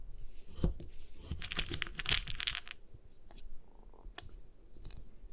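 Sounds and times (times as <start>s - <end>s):
gym chalk being crushed and crumbled: 0.5s - 2.8s.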